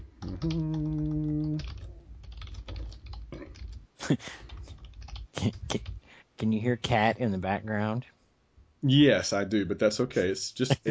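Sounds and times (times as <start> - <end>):
typing on a computer keyboard: 0.2 - 3.8, 4.4 - 6.0
speech: 0.4 - 0.8, 4.1 - 4.4, 5.4 - 8.2, 8.8 - 10.8.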